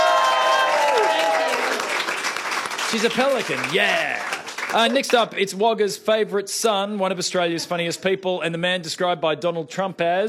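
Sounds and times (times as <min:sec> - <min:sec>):
audience applause welcoming a comedian to the stage: 0:00.0 - 0:05.4
speech: 0:02.9 - 0:10.2.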